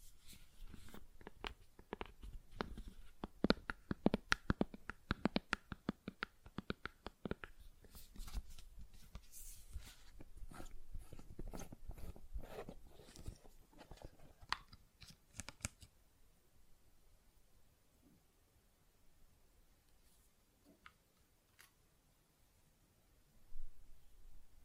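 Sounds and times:
hands working gel lotion: 0.6 - 15.9.

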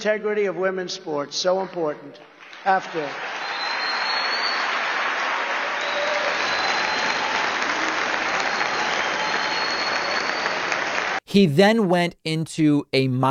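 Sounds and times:
speech: 0.0 - 3.4, 11.3 - 13.2
crowd standing ovation applause: 2.4 - 11.2.

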